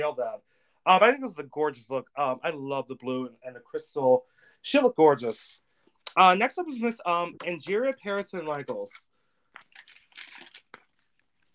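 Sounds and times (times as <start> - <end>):
speech: 0.0 - 9.1
paper crinkling: 8.7 - 11.5
page turning: 9.6 - 11.5.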